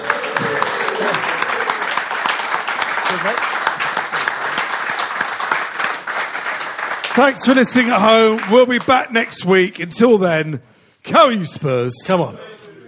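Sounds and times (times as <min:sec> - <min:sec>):
voices and cheers: 0:00.0 - 0:02.1
audience applause: 0:00.0 - 0:09.7
speech: 0:03.2 - 0:03.5, 0:07.2 - 0:12.5.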